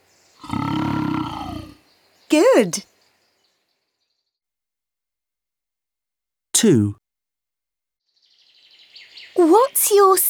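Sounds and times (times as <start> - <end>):
lion roaring: 0.4 - 1.8
speech: 2.3 - 2.9, 6.6 - 7.0, 9.4 - 10.2.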